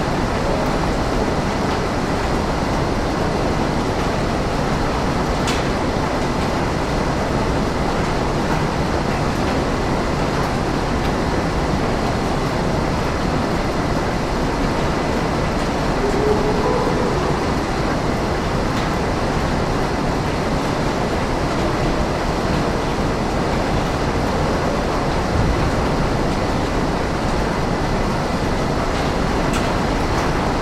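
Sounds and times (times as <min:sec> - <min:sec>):
conveyor belt at an assembly plant: 0:00.0 - 0:30.6
factory ambience at an assembly plant: 0:00.0 - 0:30.6
train: 0:00.0 - 0:30.6.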